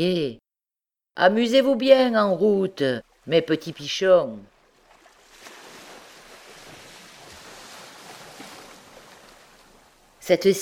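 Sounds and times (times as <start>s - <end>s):
speech: 0.0s - 0.4s, 1.2s - 4.5s, 10.3s - 10.6s
wind noise: 1.2s - 10.6s
ocean waves washing against rocks: 3.0s - 10.3s.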